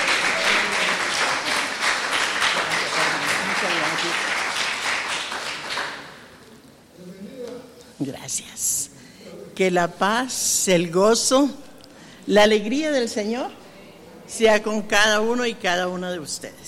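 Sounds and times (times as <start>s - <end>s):
audience applause: 0.0s - 6.4s
speech: 8.0s - 8.6s, 9.6s - 11.7s, 12.3s - 13.6s, 14.3s - 16.6s.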